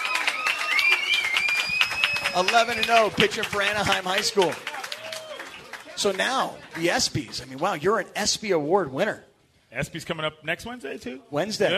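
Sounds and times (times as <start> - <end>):
applause: 0.0 - 8.0
speech: 2.4 - 4.7, 6.0 - 11.7.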